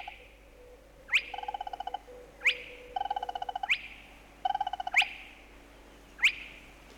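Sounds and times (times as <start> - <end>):
spotted crake's abrupt whistling call: 1.1 - 1.6, 2.4 - 3.9, 6.2 - 6.5.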